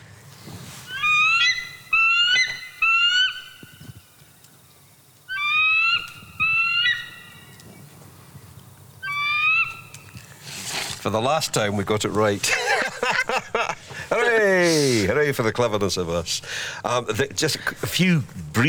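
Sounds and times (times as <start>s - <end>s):
bald eagle calling: 0.8s - 4.4s, 5.1s - 10.4s
speech: 11.1s - 18.6s
laughter: 12.4s - 15.0s.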